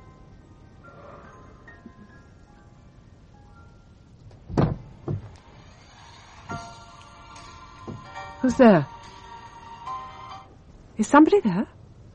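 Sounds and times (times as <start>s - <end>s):
low steady hum: 0.0s - 12.1s
door shutting with a heavy thud: 4.5s - 5.3s
soft knock: 4.5s - 5.3s, 7.9s - 8.1s
speech: 8.4s - 8.9s, 11.0s - 11.8s.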